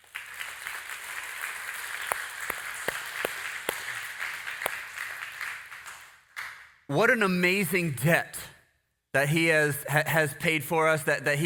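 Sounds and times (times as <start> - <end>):
audience clapping: 0.0 - 6.9
speech: 6.9 - 8.5, 9.2 - 11.4.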